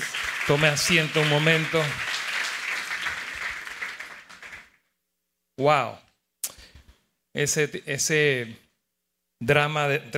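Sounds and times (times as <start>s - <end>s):
audience applauding: 0.0s - 4.8s
speech: 0.5s - 2.1s, 5.6s - 6.0s, 7.4s - 8.6s, 9.4s - 10.1s.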